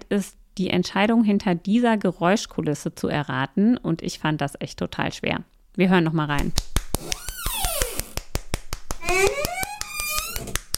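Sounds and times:
speech: 0.1 - 7.2
recliner armchair creaking: 9.0 - 10.7.

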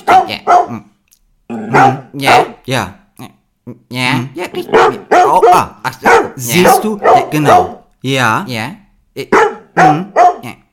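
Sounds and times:
dog barking outside the house: 0.0 - 0.8, 1.7 - 2.6, 4.7 - 7.9, 9.3 - 10.5
speech: 0.3 - 0.9, 1.8 - 10.7.

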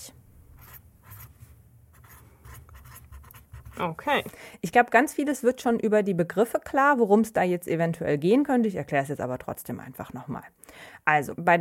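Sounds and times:
someone busily writing with scratchy strokes: 0.5 - 4.3
speech: 3.8 - 11.6.

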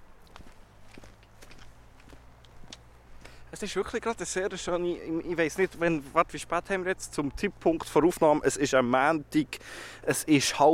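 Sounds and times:
footsteps walking downhill outdoors: 0.0 - 6.5
speech: 3.5 - 10.7.

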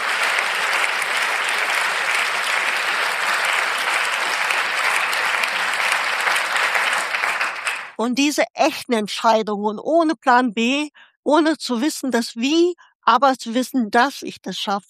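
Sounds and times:
audience applause: 0.0 - 8.0
speech: 8.0 - 14.8.

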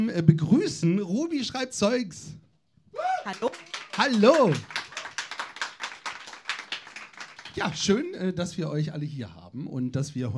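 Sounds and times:
speech: 0.0 - 4.8, 7.6 - 10.3
audience clapping: 3.2 - 8.0.

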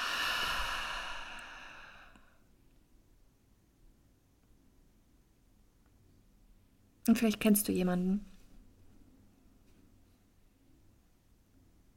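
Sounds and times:
deep breathing during a guided breathing exercise: 0.0 - 2.5
speech: 7.1 - 8.3.

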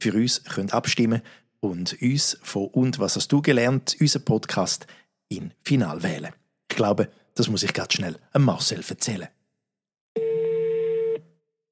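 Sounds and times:
speech: 0.0 - 9.4
telephone tone while dialing a call: 10.2 - 11.4.

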